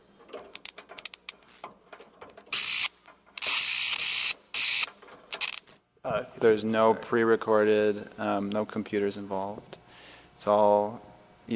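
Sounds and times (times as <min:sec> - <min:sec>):
bug zapper zapping a pencil: 0:02.6 - 0:05.6
speech: 0:06.1 - 0:09.8, 0:10.4 - 0:11.5.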